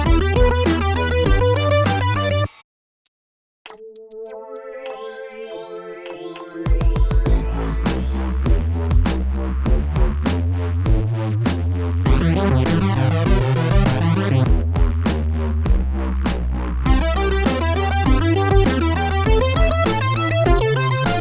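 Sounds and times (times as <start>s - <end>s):
drums: 0.0s - 2.2s, 6.7s - 21.2s.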